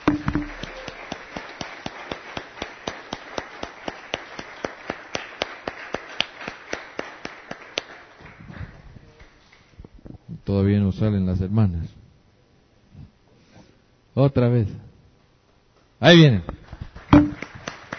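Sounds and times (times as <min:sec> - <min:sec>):
audience applause: 0:00.0 - 0:09.3, 0:16.8 - 0:17.9
speech: 0:10.5 - 0:12.0, 0:14.2 - 0:14.9, 0:16.0 - 0:16.6.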